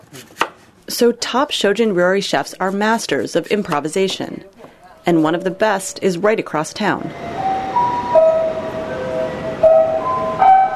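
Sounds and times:
speech: 0.1 - 7.4
traditional daily 5 p.m. chimes in Tokyo: 7.1 - 10.7.

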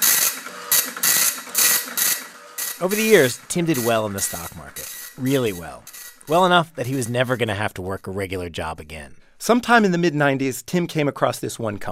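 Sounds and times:
dot matrix printer printing, hooked to an old floppy-drive computer: 0.0 - 6.4
speech: 2.8 - 11.9.

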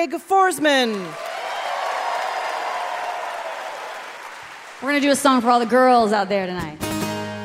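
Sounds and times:
speech: 0.0 - 1.3, 4.8 - 7.0
crowd noise at a country music concert: 0.6 - 5.8
audience applause at a country music concert: 0.8 - 5.3.

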